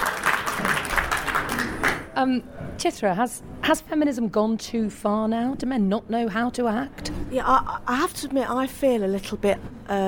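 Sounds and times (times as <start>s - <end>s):
studio audience applause during a discussion programme: 0.0s - 2.1s
speech: 2.2s - 10.0s.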